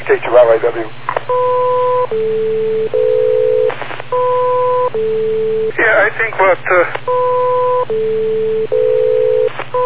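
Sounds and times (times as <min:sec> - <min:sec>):
speech: 0:00.1 - 0:03.2, 0:06.0 - 0:07.2
constant low buzzing hum: 0:01.0 - 0:05.8, 0:07.1 - 0:09.8
radio repeater beep tones: 0:01.3 - 0:05.7, 0:07.1 - 0:09.8.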